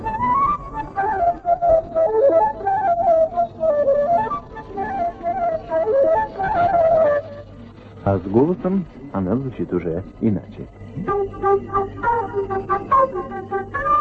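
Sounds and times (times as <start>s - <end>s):
solo flute playing a flowing mid-register melody: 0.0s - 7.5s, 11.0s - 13.9s
speech: 8.1s - 13.8s.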